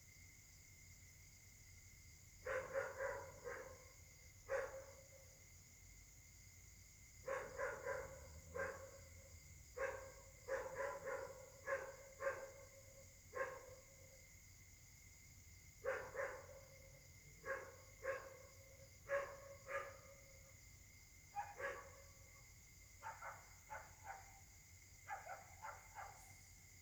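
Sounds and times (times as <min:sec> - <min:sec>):
high-pitched insect chorus: 0:00.0 - 0:26.8
dogs barking: 0:02.5 - 0:03.8, 0:07.3 - 0:09.0, 0:09.8 - 0:12.6, 0:13.4 - 0:13.7, 0:15.9 - 0:16.6, 0:17.4 - 0:18.5, 0:19.1 - 0:20.2, 0:21.4 - 0:22.0, 0:23.0 - 0:24.3, 0:25.1 - 0:26.3.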